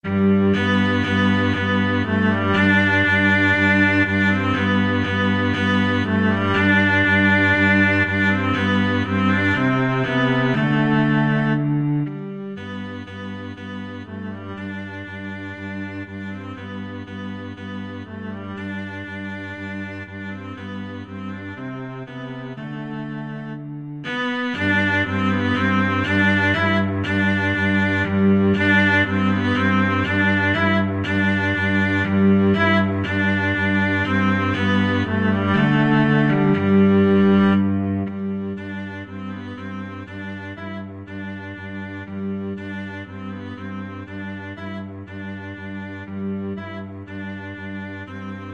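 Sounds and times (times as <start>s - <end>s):
cello duet: 0.0s - 48.5s.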